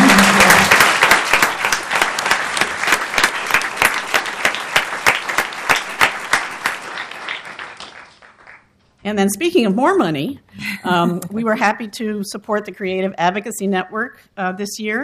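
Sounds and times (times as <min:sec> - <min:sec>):
audience applause at a nonprofit arts fundraising event: 0:00.0 - 0:08.7
speech: 0:09.1 - 0:15.0.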